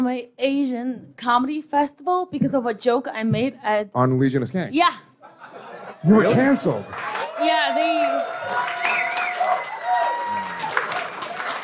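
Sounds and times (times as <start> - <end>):
speech: 0.0 - 8.6
laughter: 5.2 - 7.1
audience clapping: 6.4 - 11.6.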